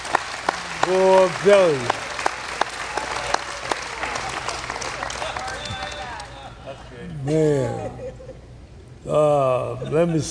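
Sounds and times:
audience applause: 0.0 - 6.6
speech: 0.8 - 2.0, 7.2 - 8.0, 9.0 - 10.2
laughter: 5.0 - 8.5.

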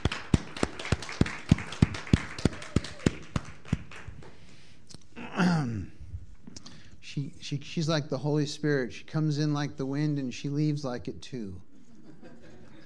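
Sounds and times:
hand claps: 0.0 - 4.4
speech: 7.2 - 11.7.

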